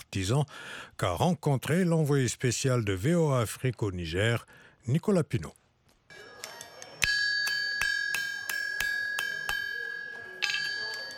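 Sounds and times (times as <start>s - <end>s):
speech: 0.1s - 6.3s
blacksmith hammering hot iron: 7.0s - 11.1s.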